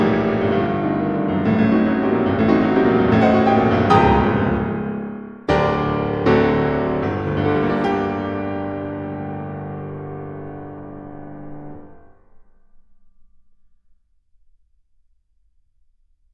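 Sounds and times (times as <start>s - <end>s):
piano prelude in G minor: 0.0s - 12.6s.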